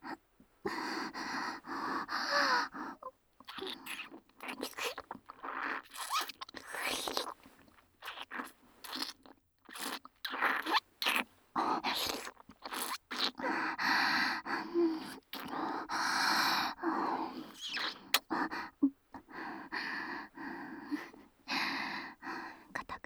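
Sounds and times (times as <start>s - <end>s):
oral sex sounds: 0.7s - 13.9s, 14.6s - 23.0s
ear licking sounds: 3.4s - 13.5s, 15.0s - 15.6s, 17.3s - 18.4s.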